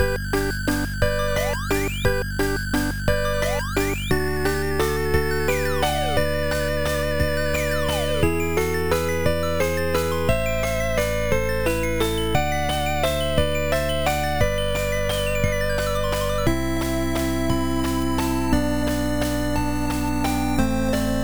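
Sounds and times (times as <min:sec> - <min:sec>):
amusement park background music: 0:00.0 - 0:21.2.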